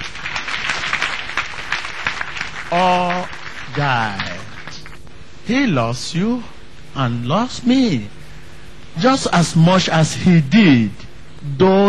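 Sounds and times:
church congregation clapping for Jesus: 0.0 - 5.0
speech: 2.7 - 4.3, 5.5 - 8.2, 9.0 - 11.8.

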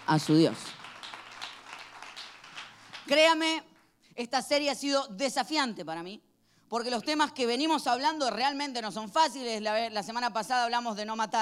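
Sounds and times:
audience applause: 0.0 - 3.1
speech: 0.1 - 0.8, 3.1 - 11.3.

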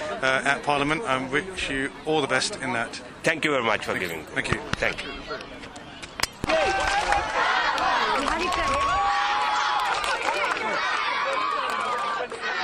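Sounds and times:
speech: 0.2 - 5.8
crowd yelling at a kabaddi match: 6.4 - 12.6.

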